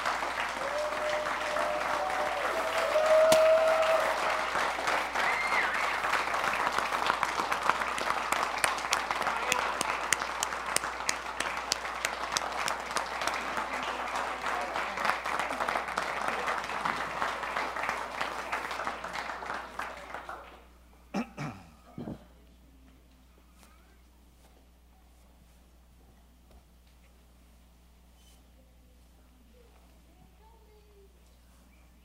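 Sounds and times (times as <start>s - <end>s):
crowd applauding: 0.0s - 20.7s.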